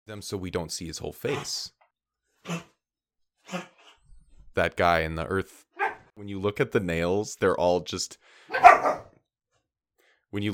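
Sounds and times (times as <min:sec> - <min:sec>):
speech: 0:00.1 - 0:01.8, 0:02.4 - 0:02.7, 0:03.5 - 0:03.7, 0:04.6 - 0:05.6, 0:06.2 - 0:09.1, 0:10.3 - 0:10.5
dog coughing fit: 0:02.5 - 0:02.7, 0:03.4 - 0:04.0, 0:08.5 - 0:09.0.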